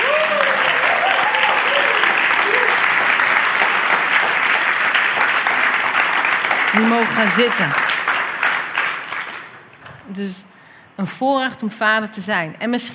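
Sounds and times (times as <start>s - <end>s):
applause: 0.0s - 9.8s
speech: 6.8s - 7.8s, 10.2s - 12.9s.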